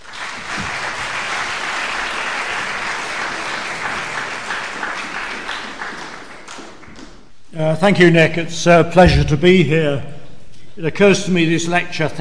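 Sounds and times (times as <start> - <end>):
crowd applause: 0.0 - 7.1
speech: 7.6 - 10.1, 10.8 - 12.1.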